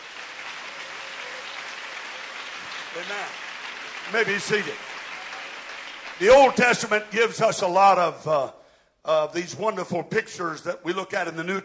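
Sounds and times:
congregation clapping hands during a worship service in a church: 0:00.0 - 0:07.4
speech: 0:02.9 - 0:04.9, 0:06.2 - 0:11.6.

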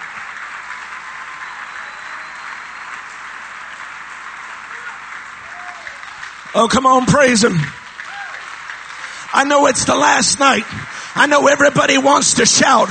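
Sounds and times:
audience clapping hands in praise: 0:00.0 - 0:12.8
speech: 0:06.5 - 0:07.8, 0:09.4 - 0:12.8.

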